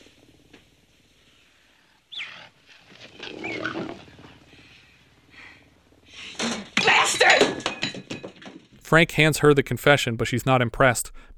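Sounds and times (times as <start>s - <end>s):
mountain lion growling playfully: 0.0s - 6.8s
speech: 8.9s - 11.3s.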